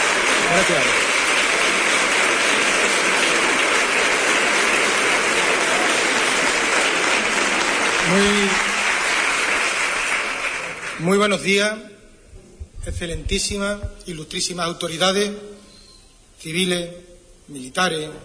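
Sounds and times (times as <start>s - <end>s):
audience ovation for the mayor of Huelva at a civic ceremony: 0.0s - 11.3s
speech: 0.5s - 1.1s, 8.1s - 8.7s, 11.0s - 11.9s, 12.8s - 15.6s, 16.4s - 18.2s.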